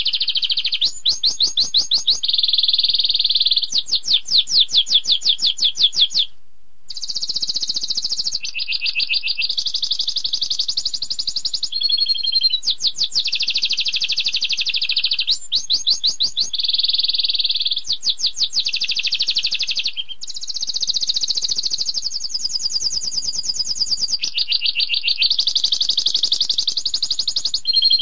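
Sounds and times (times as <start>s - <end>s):
canary singing trills: 0.0s - 6.3s, 6.9s - 28.0s.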